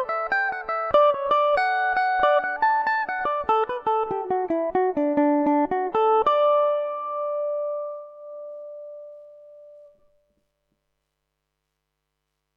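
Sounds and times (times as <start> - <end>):
Irish mandolin playing in D major: 0.0 - 9.9.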